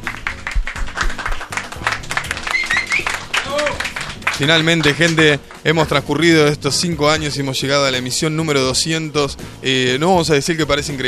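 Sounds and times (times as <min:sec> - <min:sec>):
applause: 0:00.0 - 0:05.8
speech: 0:04.4 - 0:11.0.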